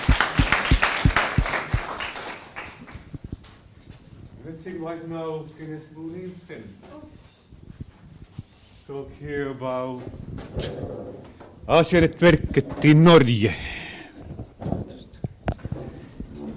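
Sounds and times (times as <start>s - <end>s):
audience applause: 0.0s - 3.1s
speech: 4.6s - 7.1s, 8.9s - 13.8s.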